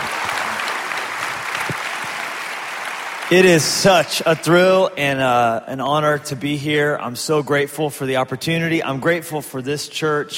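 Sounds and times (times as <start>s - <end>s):
church congregation applauding to welcome a guest pastor: 0.0s - 4.8s
speech: 3.3s - 10.3s.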